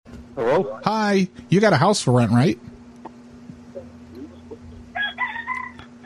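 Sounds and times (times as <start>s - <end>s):
steady hum: 0.1s - 6.0s
speech: 0.4s - 2.7s
rooster crowing: 4.3s - 6.0s.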